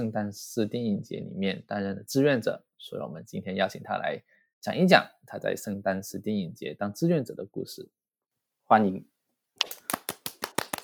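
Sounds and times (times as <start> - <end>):
speech: 0.0 - 8.0, 8.7 - 9.9
hand clapping: 9.6 - 10.8.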